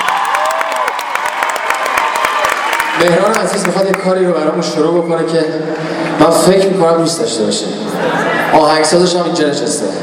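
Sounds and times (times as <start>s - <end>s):
audience cheers: 0.0s - 4.0s
audience applause at a live show with musicians: 0.0s - 4.1s
speech: 3.0s - 10.0s.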